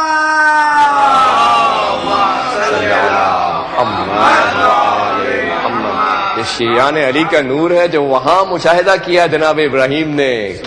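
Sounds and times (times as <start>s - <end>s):
crowd at a Shia religious gathering shouting a religious slogan: 0.0s - 7.5s
speech: 6.4s - 10.6s.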